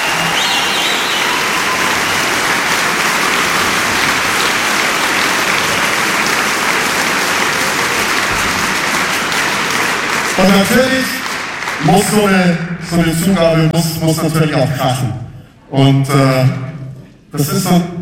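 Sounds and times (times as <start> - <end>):
large audience applause in a concert hall: 0.0 - 12.4
speech: 10.4 - 11.2, 11.8 - 16.7, 17.3 - 18.0.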